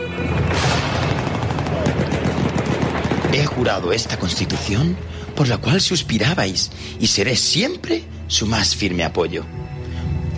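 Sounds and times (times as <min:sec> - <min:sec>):
dense enemy gunfire: 0:00.4 - 0:04.6
speech: 0:03.6 - 0:09.6.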